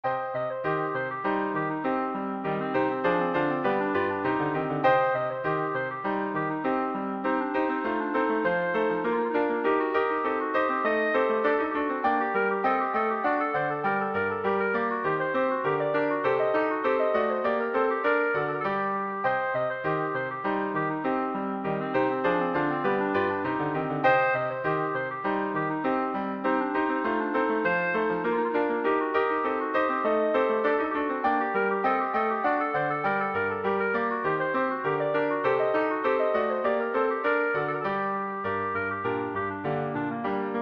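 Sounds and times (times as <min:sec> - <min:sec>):
clarinet: 0:00.0 - 0:40.5.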